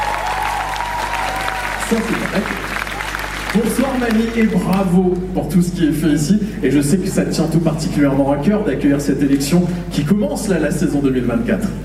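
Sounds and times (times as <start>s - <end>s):
audience at a French evening event clapping and cheering: 0.0s - 5.1s
low steady hum: 0.0s - 11.8s
speech: 1.9s - 2.8s, 3.5s - 11.8s.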